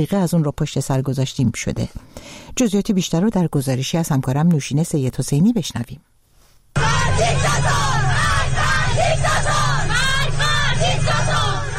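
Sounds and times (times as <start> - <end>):
speech: 0.0 - 6.1
schoolgirls who have removed their hijabs chanting protest slogans: 6.8 - 11.7.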